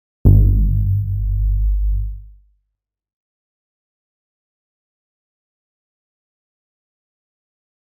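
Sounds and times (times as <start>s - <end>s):
bass cinematic impact hit: 0.3s - 2.4s.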